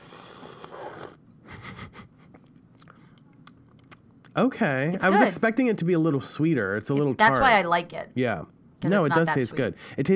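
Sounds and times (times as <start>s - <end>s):
slurping a drink: 0.0s - 1.2s
speech: 4.4s - 10.1s.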